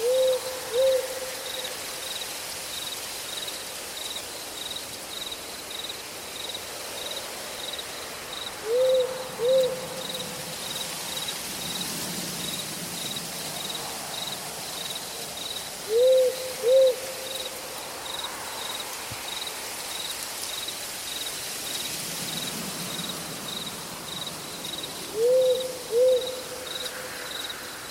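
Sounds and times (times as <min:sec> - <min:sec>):
owl hooting: 0:00.0 - 0:01.4, 0:08.6 - 0:10.2, 0:15.9 - 0:17.4, 0:25.1 - 0:26.8
crickets chirping: 0:00.0 - 0:27.8
rain-like hiss: 0:00.0 - 0:27.8.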